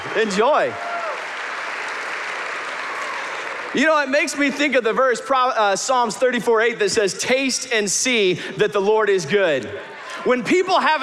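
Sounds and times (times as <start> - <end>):
audience applause: 0.0 - 4.4
speech: 0.1 - 0.9, 3.7 - 11.0.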